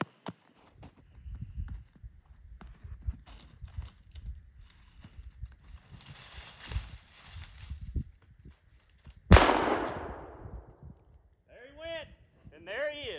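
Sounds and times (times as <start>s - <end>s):
rustling and shuffling movement: 0.1s - 9.2s
gunshot while hunting in a brush pile: 9.3s - 10.8s.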